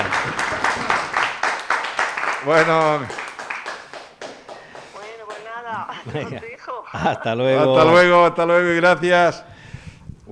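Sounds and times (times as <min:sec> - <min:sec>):
audience applause: 0:00.0 - 0:06.5
speech: 0:02.4 - 0:03.2, 0:06.0 - 0:09.5
laughter: 0:04.9 - 0:08.5.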